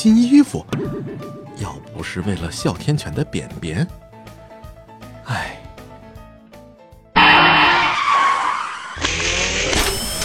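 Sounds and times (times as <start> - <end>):
speech: 0.0 - 4.0, 5.3 - 5.6
car tires skidding to a stop: 7.2 - 9.0.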